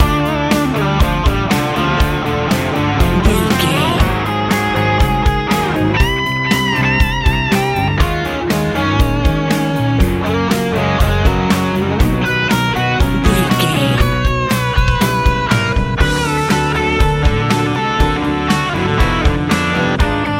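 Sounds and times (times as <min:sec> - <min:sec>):
warm hopeful easy rock music: 0:00.0 - 0:20.3.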